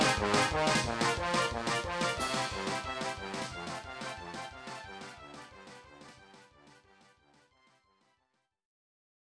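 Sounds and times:
comical dungeon game music: 0.0s - 7.1s.

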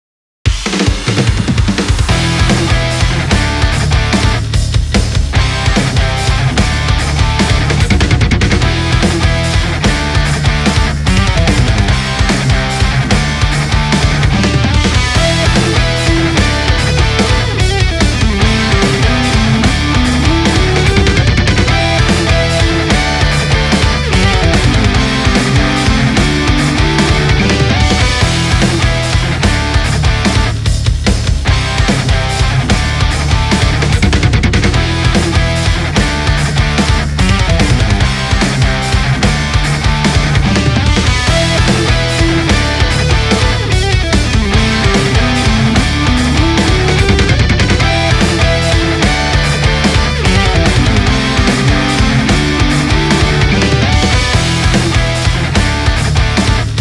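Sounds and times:
battle background music: 0.5s - 56.8s.

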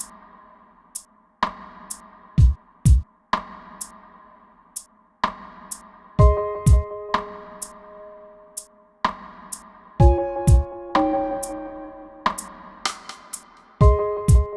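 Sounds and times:
dub instrumental: 6.2s - 8.7s, 10.0s - 14.5s.

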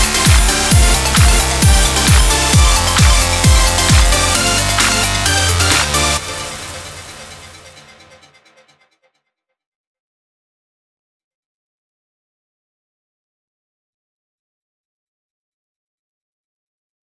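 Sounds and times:
instrumental music: 0.0s - 8.1s.

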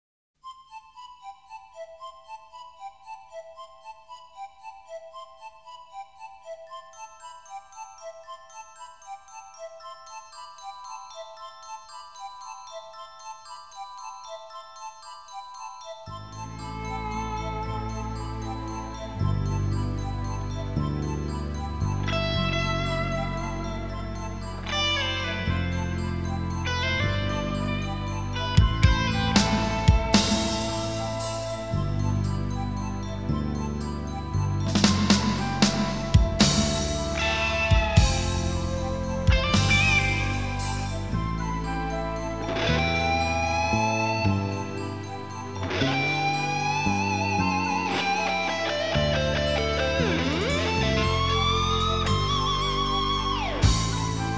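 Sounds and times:
harp: 1.1s - 54.3s.

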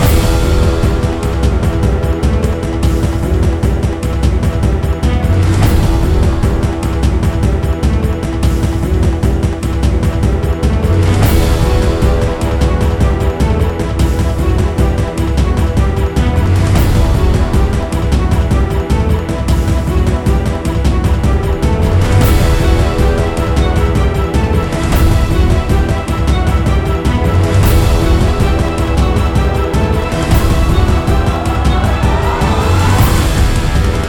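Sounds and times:
PVE background music: 0.0s - 34.0s.

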